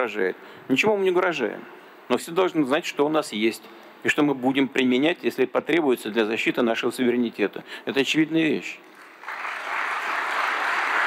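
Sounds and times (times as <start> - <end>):
speech: 0.0 - 8.9
studio audience applauding: 8.9 - 11.0.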